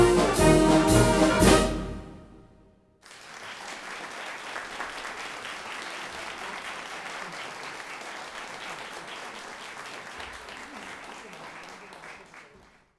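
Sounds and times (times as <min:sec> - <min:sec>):
march music: 0:00.0 - 0:02.7.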